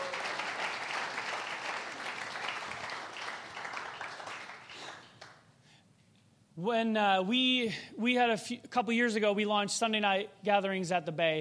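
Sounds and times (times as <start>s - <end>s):
audience applause: 0.0s - 5.4s
speech: 6.6s - 11.3s.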